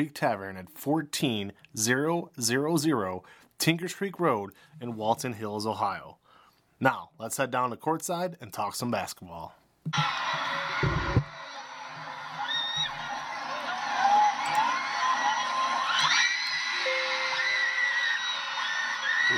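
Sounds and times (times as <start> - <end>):
speech: 0.0 - 6.2, 6.8 - 11.2
fans filing into a basketball gym: 9.9 - 19.3.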